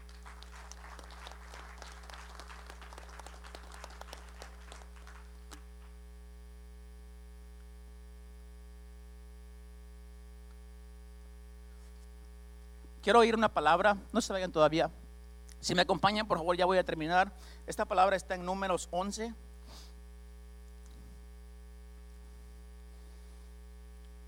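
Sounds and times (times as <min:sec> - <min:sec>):
audience applauding: 0:00.0 - 0:05.6
speech: 0:13.0 - 0:15.0, 0:15.6 - 0:19.9.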